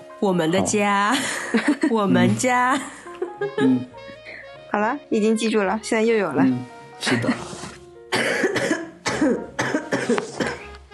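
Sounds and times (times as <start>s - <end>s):
speech: 0.2s - 4.1s, 4.7s - 7.5s
harsh coughs: 8.1s - 10.7s.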